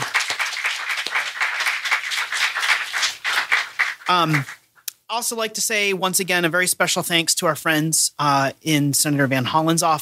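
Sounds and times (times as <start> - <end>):
audience applause: 0.0 - 4.6
speech: 4.1 - 4.5, 5.1 - 10.0.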